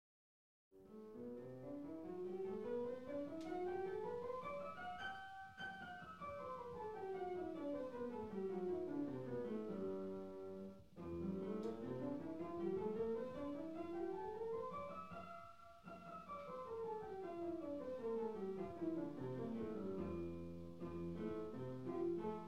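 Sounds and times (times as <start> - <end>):
piano: 0.8 - 22.4.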